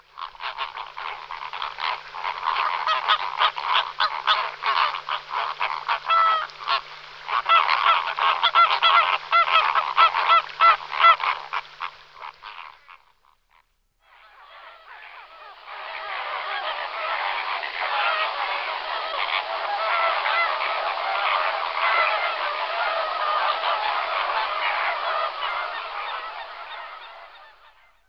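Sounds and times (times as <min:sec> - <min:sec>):
greater flamingo flock honking and chattering: 0:00.1 - 0:28.0.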